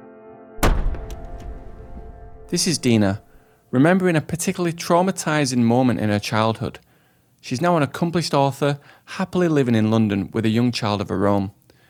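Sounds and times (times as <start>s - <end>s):
door slamming shut: 0.6s - 3.4s
speech: 2.5s - 11.6s.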